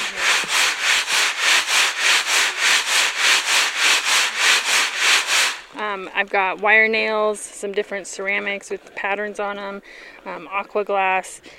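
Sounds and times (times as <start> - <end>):
soil being screened at an archaeological dig: 0.0 - 5.8
speech: 6.1 - 11.5.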